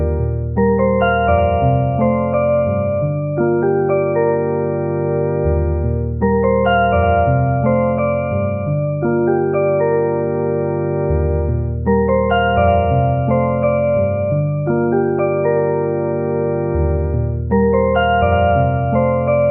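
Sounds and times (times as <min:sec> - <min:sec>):
electric piano: 0:00.0 - 0:19.5.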